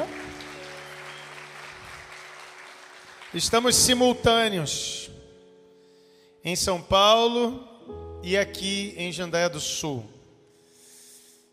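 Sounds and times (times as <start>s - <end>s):
audience applauding: 0.0s - 4.2s
speech: 3.3s - 5.2s, 6.4s - 10.2s.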